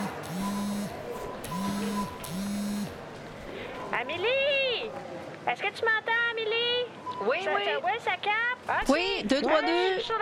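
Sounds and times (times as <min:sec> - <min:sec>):
mobile phone ringing: 0:00.0 - 0:03.0
speech: 0:04.0 - 0:04.4, 0:05.5 - 0:10.2.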